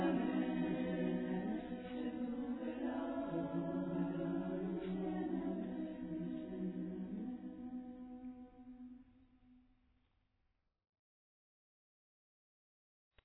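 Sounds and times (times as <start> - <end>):
women singing: 0.0 - 8.5.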